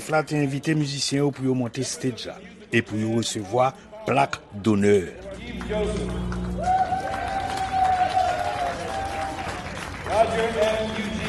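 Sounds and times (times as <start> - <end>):
speech: 0.0 - 6.7
audience applause: 5.4 - 11.2.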